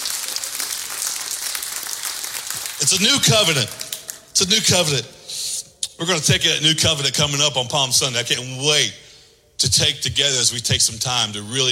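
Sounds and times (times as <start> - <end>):
audience clapping hands: 0.0 - 4.3
speech: 2.8 - 3.8, 4.4 - 5.2, 6.0 - 11.7.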